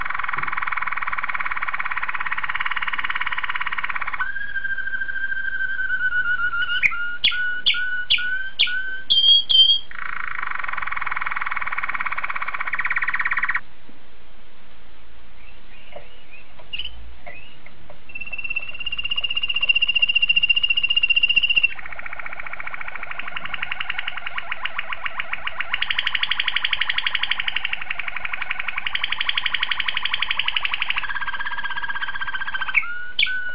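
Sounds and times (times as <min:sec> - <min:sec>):
canary singing: 0:00.0 - 0:13.6, 0:15.4 - 0:33.5.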